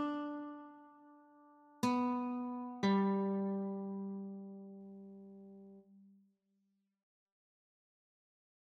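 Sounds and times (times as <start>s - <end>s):
guitar playing a children's tune, notes only: 0.0s - 5.8s.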